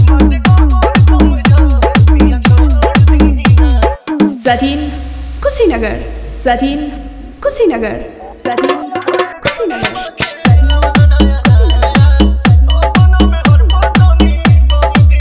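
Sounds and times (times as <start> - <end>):
hard dholki drum: 0.0 - 5.4, 8.4 - 15.2
Bhojpuri DJ remix song: 0.0 - 15.2.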